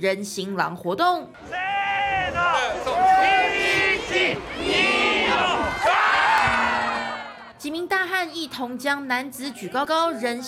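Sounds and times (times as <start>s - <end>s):
speech: 0.0s - 5.9s, 7.6s - 10.4s
crowd shouting and cheering: 1.4s - 7.6s.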